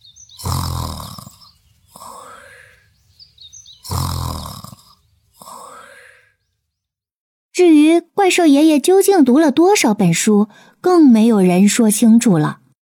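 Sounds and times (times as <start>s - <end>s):
snoring: 0.3s - 2.7s, 3.8s - 6.4s
speech: 7.6s - 12.6s.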